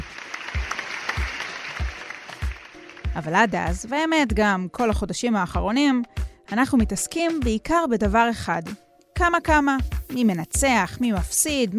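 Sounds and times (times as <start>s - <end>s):
crowd applauding: 0.0s - 3.2s
speech: 3.2s - 11.7s.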